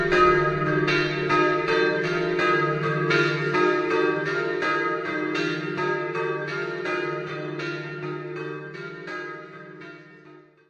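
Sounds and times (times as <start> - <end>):
bells ringing in Villanova delle Grotte: 0.0 - 10.4.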